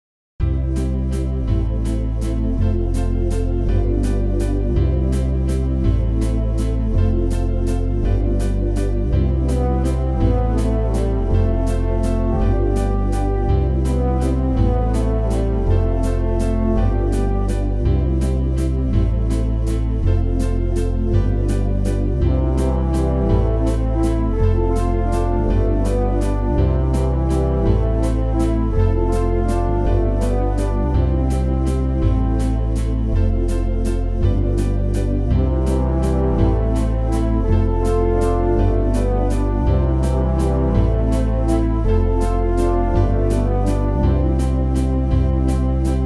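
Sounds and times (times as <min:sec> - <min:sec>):
synth pad: 0:00.4 - 0:46.0.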